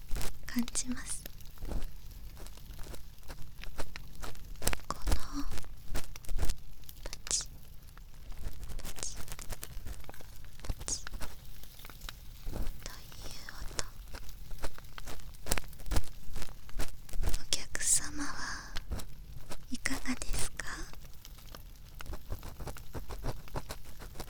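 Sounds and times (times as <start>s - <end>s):
crackling fireplace: 0.0s - 24.2s
faint whispery voice: 0.4s - 1.8s, 4.8s - 5.7s, 7.0s - 7.6s, 8.6s - 9.4s, 10.6s - 11.3s, 12.6s - 14.1s, 17.2s - 19.0s, 19.6s - 21.1s
speech: 0.6s - 1.8s.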